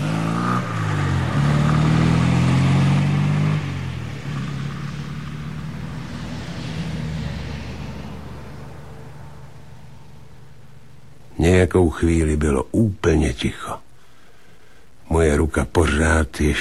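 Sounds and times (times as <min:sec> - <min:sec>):
car engine revving and pulling away through gear shifts: 0:00.0 - 0:11.2
speech: 0:11.5 - 0:13.8, 0:15.1 - 0:16.6.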